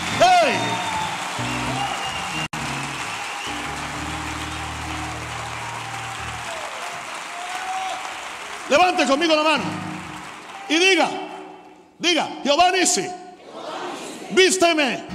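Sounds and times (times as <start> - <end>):
audience applauding: 0.0 - 11.4
speech: 8.8 - 9.8, 10.7 - 11.2, 12.0 - 13.2, 14.3 - 15.1.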